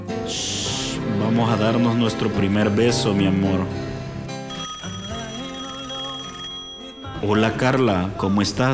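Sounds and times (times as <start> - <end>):
speech: 0.3 - 0.5, 1.3 - 3.8, 7.3 - 8.7
telephone ringtone for an incoming call: 4.4 - 7.7.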